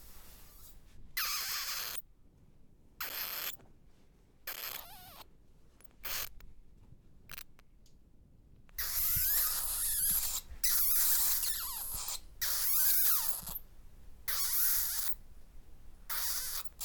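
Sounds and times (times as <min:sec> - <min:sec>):
several bats squeaking inside a small cave: 0:01.2 - 0:02.0, 0:03.0 - 0:03.6, 0:04.5 - 0:05.3, 0:06.0 - 0:06.3, 0:08.8 - 0:13.6, 0:14.3 - 0:15.2, 0:16.1 - 0:16.8.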